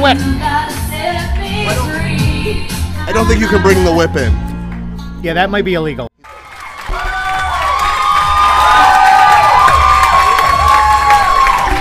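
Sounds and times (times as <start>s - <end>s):
speech: 0.0s - 0.7s, 1.5s - 4.5s, 5.2s - 6.1s
crowd cheering and applauding: 6.2s - 11.8s.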